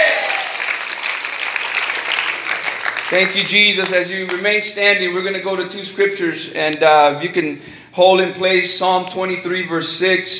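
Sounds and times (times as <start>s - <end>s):
audience clapping hands: 0.0s - 5.0s
speech: 3.1s - 10.3s.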